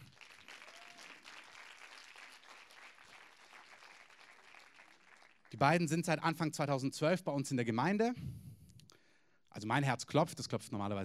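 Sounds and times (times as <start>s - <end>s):
audience applause: 0.0s - 5.6s
speech: 5.5s - 8.4s, 9.6s - 11.0s.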